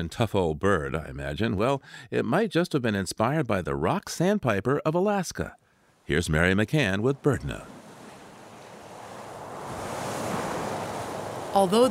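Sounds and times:
speech: 0:00.0 - 0:07.8, 0:11.6 - 0:11.8
blustery winter wind: 0:06.9 - 0:11.8.

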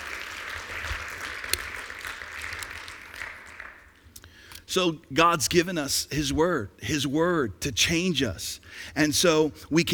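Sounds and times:
audience round of applause: 0:00.0 - 0:04.0
speech: 0:04.7 - 0:09.9.

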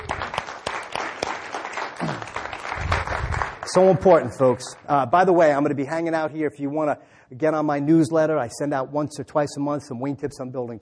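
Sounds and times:
audience applause: 0:00.0 - 0:04.6
speech: 0:03.7 - 0:10.8.

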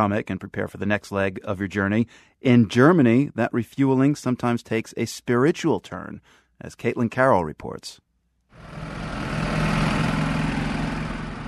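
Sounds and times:
speech: 0:00.0 - 0:08.0
highway traffic: 0:08.6 - 0:11.4
passing cars hissing: 0:08.6 - 0:11.4
truck engines rumbling: 0:08.6 - 0:11.4.

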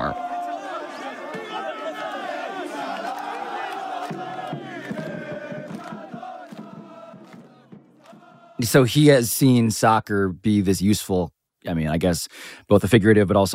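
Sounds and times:
crowd of football fans singing: 0:00.0 - 0:08.7
speech: 0:08.6 - 0:13.5.

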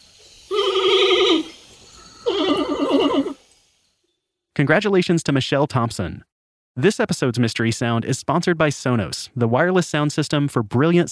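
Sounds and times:
panda bleating calls: 0:00.5 - 0:01.5, 0:02.2 - 0:03.4
speech: 0:04.6 - 0:11.1.

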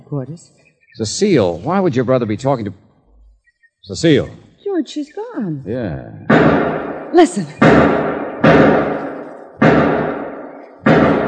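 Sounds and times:
speech: 0:00.1 - 0:02.8, 0:03.8 - 0:08.7
gunshots from a radio drama sound effect near a shed: 0:06.3 - 0:11.2.

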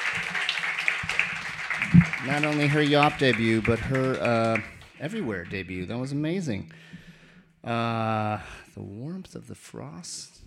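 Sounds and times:
audience applause: 0:00.0 - 0:05.6
speech: 0:02.2 - 0:07.0, 0:07.6 - 0:10.4.

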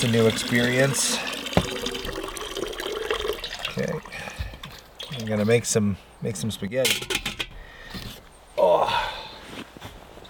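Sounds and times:
speech: 0:00.0 - 0:01.7, 0:05.2 - 0:07.3
running tap water: 0:00.0 - 0:05.3.

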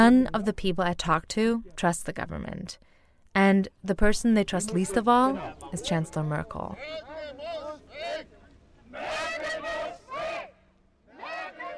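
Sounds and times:
speech: 0:00.0 - 0:08.3
protest crowd yelling slogans: 0:04.7 - 0:06.1, 0:06.8 - 0:11.7.

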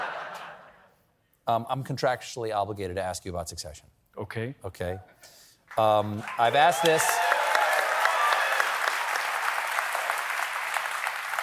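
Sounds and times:
speech: 0:01.5 - 0:07.2
audience applause: 0:05.8 - 0:11.4.

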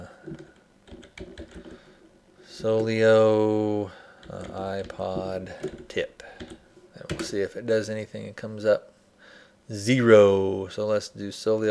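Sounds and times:
typing a search on a computer keyboard: 0:00.2 - 0:01.9, 0:04.2 - 0:07.4
speech: 0:02.6 - 0:06.1, 0:07.2 - 0:08.9, 0:09.7 - 0:11.6.

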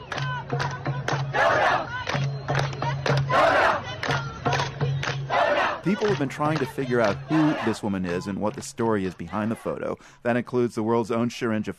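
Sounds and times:
large crowd of protesters chanting: 0:00.0 - 0:08.2, 0:09.0 - 0:09.9
roaring shouts: 0:01.3 - 0:02.0, 0:03.3 - 0:03.8, 0:07.2 - 0:07.8
speech: 0:05.8 - 0:11.7.

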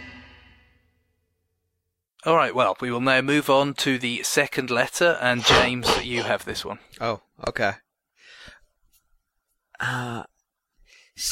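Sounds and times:
speech: 0:02.2 - 0:07.8, 0:09.8 - 0:10.3
person blowing nose: 0:05.4 - 0:06.4.

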